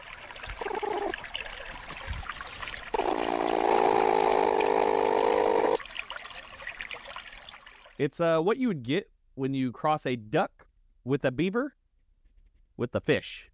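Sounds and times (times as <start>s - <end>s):
trickling water: 0.0s - 8.0s
platypus growling call: 0.6s - 1.2s, 2.9s - 5.8s
speech: 8.0s - 11.8s, 12.8s - 13.5s.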